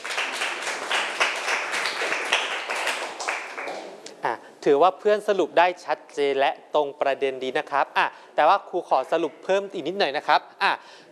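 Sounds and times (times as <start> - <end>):
class clapping: 0.0 - 4.0
speech: 4.6 - 11.0.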